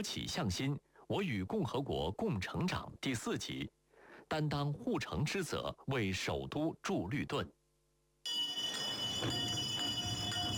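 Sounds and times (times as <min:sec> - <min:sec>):
speech: 0:00.0 - 0:07.6, 0:09.2 - 0:09.4
hand bell ringing for garbage collection: 0:08.3 - 0:10.5.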